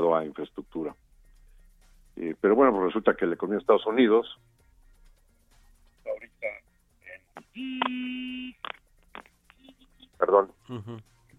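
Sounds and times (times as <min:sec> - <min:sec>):
speech: 0:00.2 - 0:01.0, 0:02.2 - 0:04.6, 0:07.6 - 0:08.8, 0:10.2 - 0:11.1
alarm going off with a harsh electronic buzz: 0:07.4 - 0:08.7.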